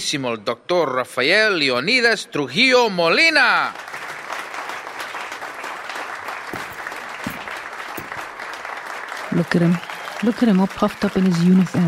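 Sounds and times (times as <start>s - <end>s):
speech: 0.0s - 4.0s, 9.4s - 11.8s
crowd applause greeting the arrival of President Rafael Trujillo: 3.3s - 11.8s
low thumps: 6.5s - 8.4s.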